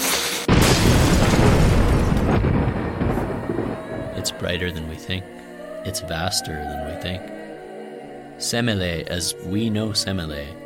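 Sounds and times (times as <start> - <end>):
lightning strike thunderclap: 0.5 - 4.4
speech: 4.4 - 7.4, 8.4 - 10.6.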